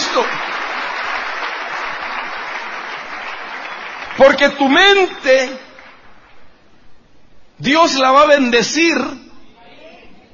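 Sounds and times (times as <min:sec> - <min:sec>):
church audience clapping for the Lord: 0:00.0 - 0:06.5
speech: 0:04.2 - 0:05.7, 0:07.6 - 0:09.2.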